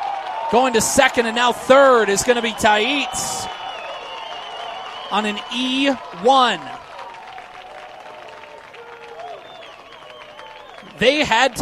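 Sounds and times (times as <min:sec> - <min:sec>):
crowd yelling as runner breaks: 0:00.0 - 0:11.5
speech: 0:00.5 - 0:03.5, 0:05.1 - 0:06.8, 0:11.0 - 0:11.5.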